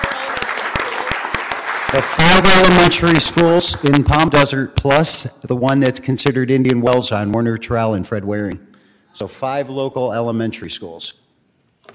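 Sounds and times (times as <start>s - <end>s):
crowd applauding: 0.0s - 4.4s
sharp hand claps: 0.0s - 4.4s
speech: 1.9s - 11.2s.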